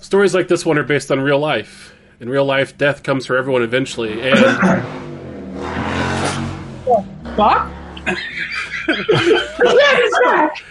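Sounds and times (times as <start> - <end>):
speech: 0.1 - 5.1, 6.9 - 10.6
motorcycle passing by outside: 3.8 - 10.0
laughter: 4.3 - 4.9, 7.9 - 10.6.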